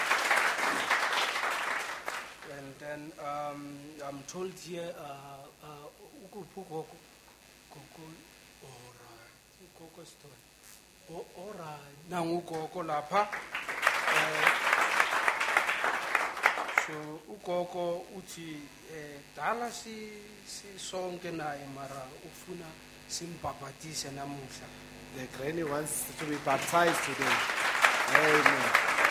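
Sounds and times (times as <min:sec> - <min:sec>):
audience applause: 0:00.0 - 0:02.5, 0:13.3 - 0:17.0, 0:26.0 - 0:29.0
speech: 0:03.0 - 0:07.1, 0:07.7 - 0:14.6, 0:16.9 - 0:28.9.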